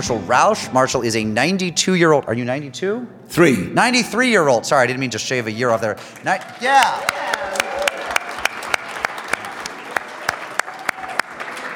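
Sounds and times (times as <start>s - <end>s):
speech: 0.0s - 7.3s
audience clapping: 5.9s - 11.7s.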